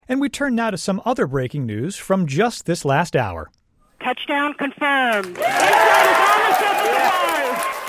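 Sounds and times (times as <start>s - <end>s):
speech: 0.1s - 7.5s
Jet Propulsion Laboratory scientists cheering NASA InSight's Mars landing in Pasadena: 5.3s - 7.8s.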